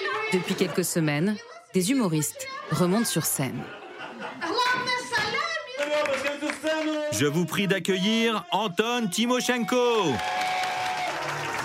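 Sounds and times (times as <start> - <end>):
people laughing and calling out: 0.0 - 5.8
speech: 0.3 - 4.5, 7.1 - 10.4
audience applause in a bar: 5.7 - 7.4, 9.2 - 11.6.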